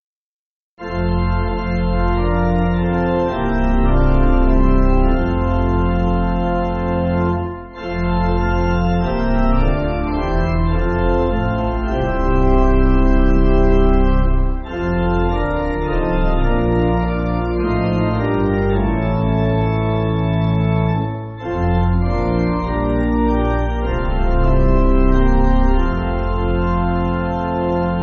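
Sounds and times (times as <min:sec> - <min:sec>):
pipe organ music backing: 0:00.8 - 0:28.0.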